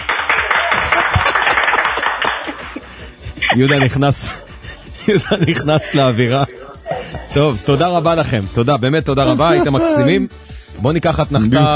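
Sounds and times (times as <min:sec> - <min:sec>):
audience clapping: 0:00.0 - 0:03.0
laughter: 0:00.4 - 0:07.6, 0:09.2 - 0:10.3
speech: 0:03.6 - 0:04.4, 0:05.1 - 0:06.6, 0:07.4 - 0:11.7.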